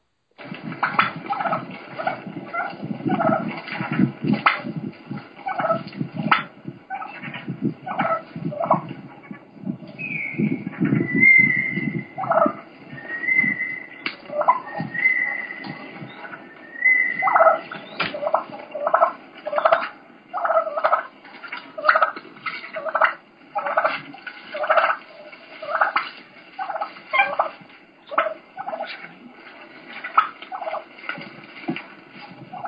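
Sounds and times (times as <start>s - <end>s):
wild turkeys purring: 0.0s - 32.6s
high-pitched turkey squeals and whines: 8.4s - 18.6s.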